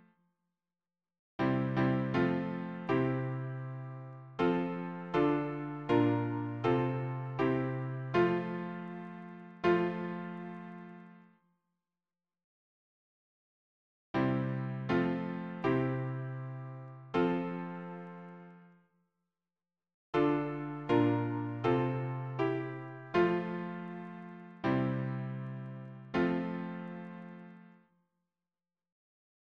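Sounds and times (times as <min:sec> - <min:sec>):
piano harmony: 0:01.4 - 0:11.2, 0:14.2 - 0:18.7, 0:20.2 - 0:27.7.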